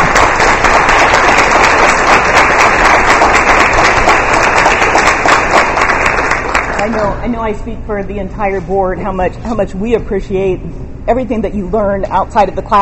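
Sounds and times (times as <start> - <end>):
school board meeting audience applause honoring students: 0.0 - 7.1
speech: 6.8 - 12.8.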